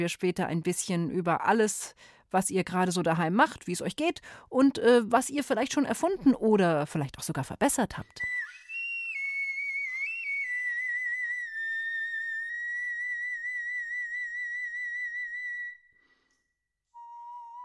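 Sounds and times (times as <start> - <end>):
speech: 0.0 - 8.4
bone flute playing: 8.3 - 15.9, 17.0 - 17.6.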